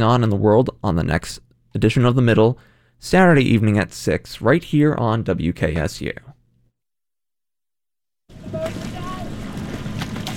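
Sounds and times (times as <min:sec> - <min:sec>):
speech: 0:00.0 - 0:06.3
sculling boat oars on the Cuyahoga River water: 0:08.3 - 0:10.3.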